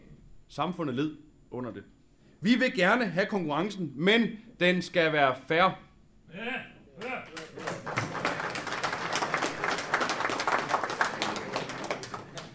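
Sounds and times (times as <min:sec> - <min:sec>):
speech: 0:00.5 - 0:06.7
person clapping hands: 0:07.0 - 0:12.5.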